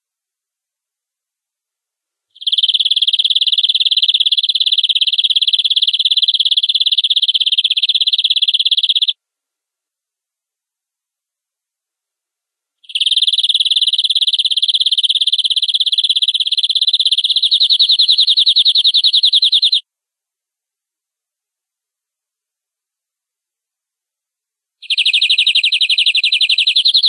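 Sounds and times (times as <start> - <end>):
domestic canary giving long rolling song: 2.3 - 9.2, 12.8 - 19.9, 24.8 - 27.0.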